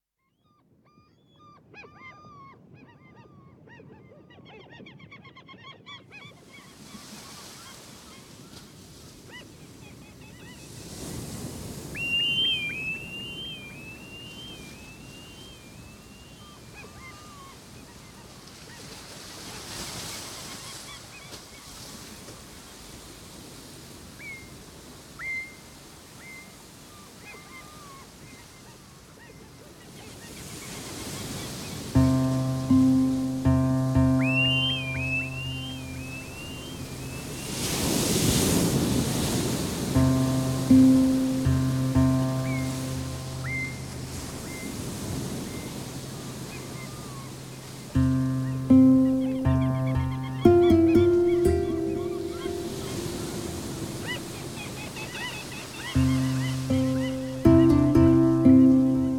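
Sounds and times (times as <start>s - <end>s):
sea waves: 10.5s - 17.8s, 18.5s - 28.2s, 30.2s - 59.1s.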